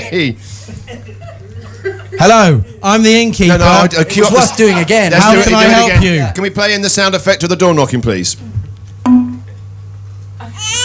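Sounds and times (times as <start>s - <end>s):
speech: 0.1s - 1.2s, 2.2s - 9.3s
laughter: 0.6s - 2.8s, 4.0s - 5.3s
steady low hum: 9.0s - 9.7s
baby crying sound effect: 10.4s - 10.8s.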